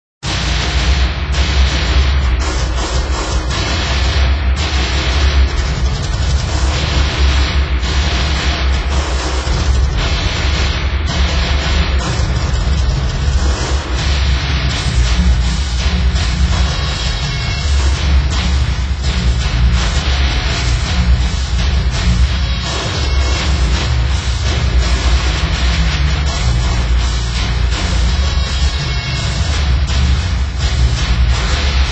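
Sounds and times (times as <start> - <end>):
ambient music: 0.2 - 31.8.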